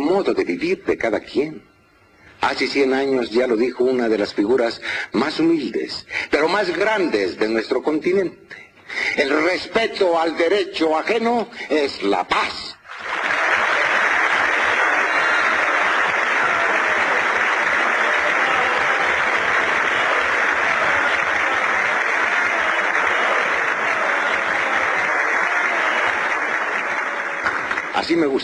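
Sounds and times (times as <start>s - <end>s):
speech: 0.1s - 1.7s, 2.4s - 13.3s, 28.0s - 28.4s
audience applause: 12.9s - 28.4s.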